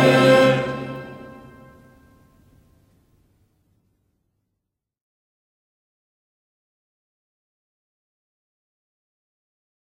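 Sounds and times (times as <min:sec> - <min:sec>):
anthem being sung: 0:00.0 - 0:02.3.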